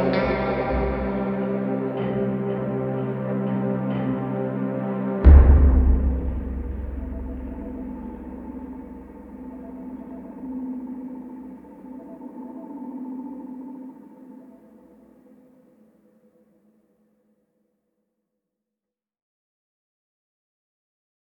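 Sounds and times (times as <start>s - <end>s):
instrumental music: 0.0s - 12.1s.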